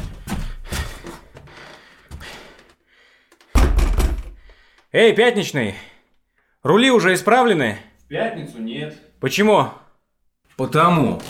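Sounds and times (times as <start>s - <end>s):
dull thumps on a bathroom door: 3.6s - 4.5s
speech: 4.9s - 5.9s, 6.6s - 9.8s, 10.6s - 11.2s.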